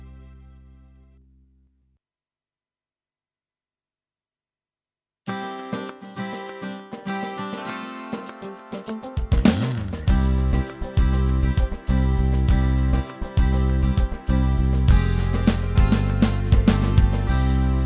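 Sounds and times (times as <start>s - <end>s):
Yamaha keyboard accompaniment styles: 5.3s - 17.8s.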